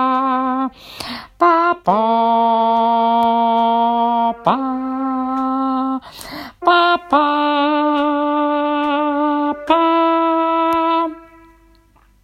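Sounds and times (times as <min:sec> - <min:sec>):
alto singing a lullaby: 0:00.0 - 0:12.1.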